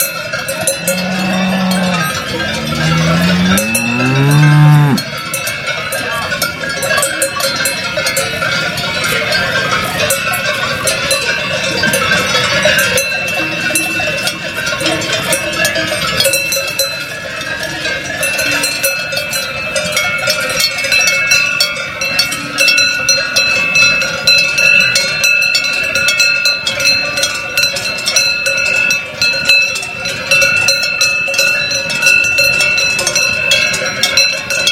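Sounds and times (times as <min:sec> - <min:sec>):
cattle bells: 0:00.0 - 0:34.7.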